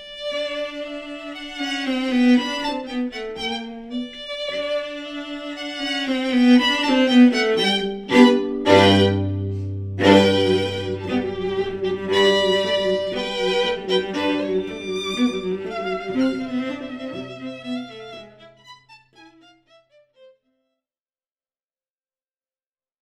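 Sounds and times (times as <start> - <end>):
cello in a duet with violin: 0.0 - 20.4
violin in a duet with cello: 0.0 - 20.4.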